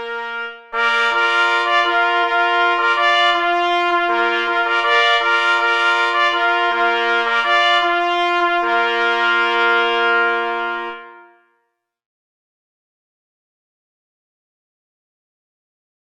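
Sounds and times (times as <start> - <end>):
cynological fanfare: 0.0 - 11.5.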